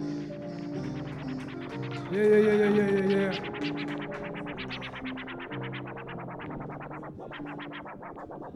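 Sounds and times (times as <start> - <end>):
DJ turntable scratching: 0.1 - 8.5
speech: 2.1 - 4.0.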